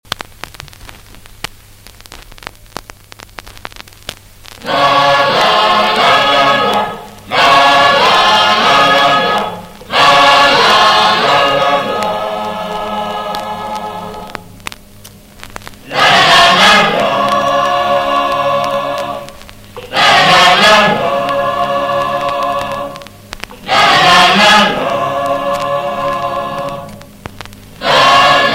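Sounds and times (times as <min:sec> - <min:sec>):
choir singing a signature jingle: 0:04.6 - 0:14.3, 0:15.9 - 0:19.3, 0:19.9 - 0:23.0, 0:23.6 - 0:27.0, 0:27.8 - 0:28.5.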